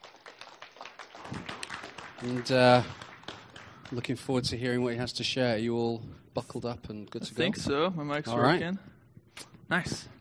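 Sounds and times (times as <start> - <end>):
round of applause: 0.0 - 4.4
speech: 2.2 - 3.0, 3.9 - 8.9, 9.7 - 10.1.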